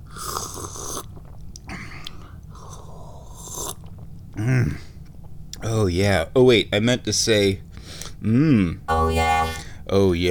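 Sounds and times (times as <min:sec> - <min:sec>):
person slurping sips of tea: 0:00.1 - 0:01.1
speech: 0:04.4 - 0:04.8, 0:05.7 - 0:10.2.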